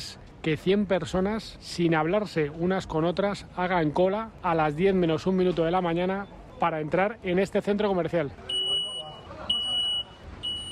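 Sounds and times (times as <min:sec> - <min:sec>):
speech: 0:00.4 - 0:08.5
electronic beep announcing store opening: 0:08.5 - 0:10.6.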